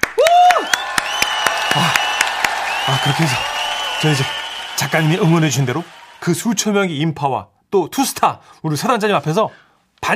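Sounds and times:
audience applause: 0:00.0 - 0:06.5
speech: 0:02.9 - 0:10.1.

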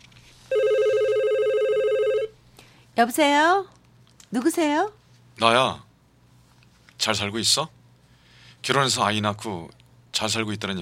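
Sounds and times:
telephone ringing: 0:00.5 - 0:02.4
speech: 0:03.0 - 0:05.9, 0:07.0 - 0:07.8, 0:08.6 - 0:10.7.

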